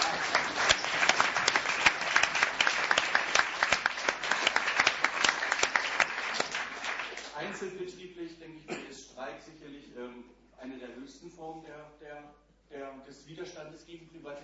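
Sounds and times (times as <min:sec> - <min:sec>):
loud applause: 0:00.0 - 0:07.4
speech: 0:10.8 - 0:14.4.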